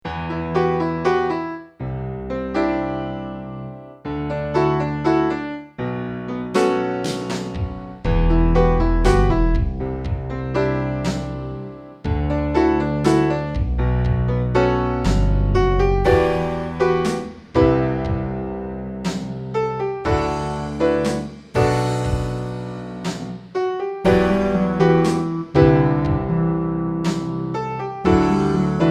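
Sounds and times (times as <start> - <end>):
piano interlude: 0.0 - 28.8.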